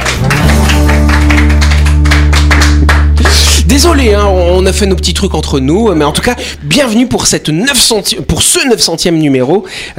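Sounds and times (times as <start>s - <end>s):
studio applause: 0.0s - 5.0s
speech: 3.8s - 9.9s.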